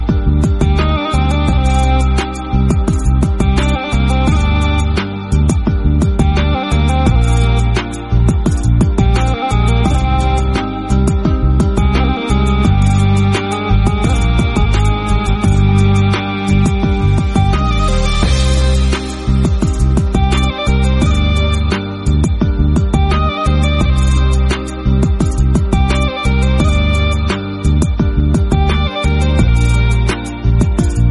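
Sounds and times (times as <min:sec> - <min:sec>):
Turkish background music: 0:00.0 - 0:31.1.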